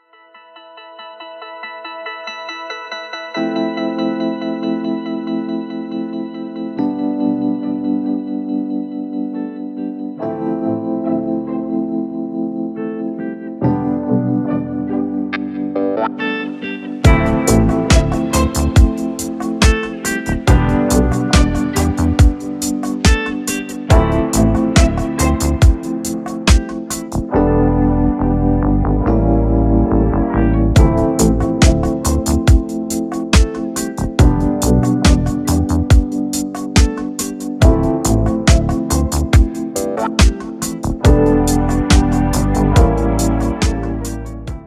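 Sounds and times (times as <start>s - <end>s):
instrumental music: 0.0s - 44.6s.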